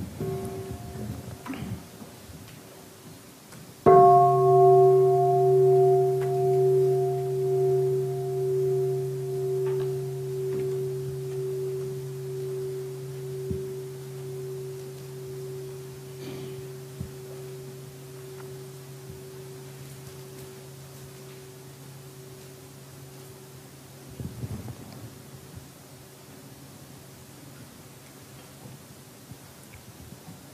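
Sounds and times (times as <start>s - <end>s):
meditation bell ringing: 0.2s - 1.5s, 3.9s - 24.4s.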